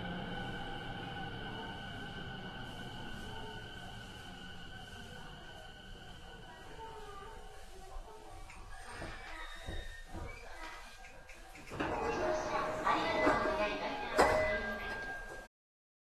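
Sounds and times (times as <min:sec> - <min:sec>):
Yokosuka Sobu Rapid E217 train: 0:00.0 - 0:15.5.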